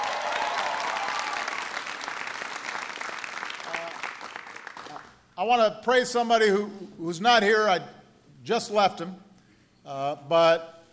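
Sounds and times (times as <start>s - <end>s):
audience applause: 0.0s - 5.1s
speech: 5.4s - 9.2s, 9.8s - 10.7s.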